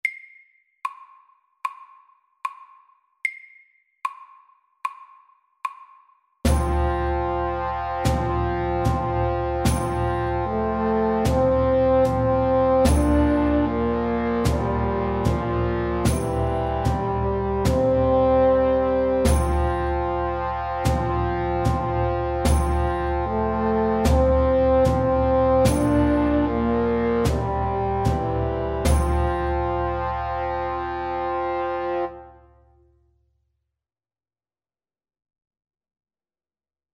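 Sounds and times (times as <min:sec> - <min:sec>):
slow English melody: 0:06.5 - 0:32.8.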